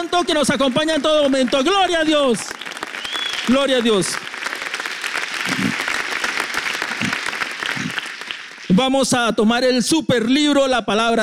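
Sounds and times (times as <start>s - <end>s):
speech: 0.0s - 2.8s, 3.5s - 4.3s, 8.7s - 11.2s
church congregation applause during a worship service: 0.0s - 9.2s.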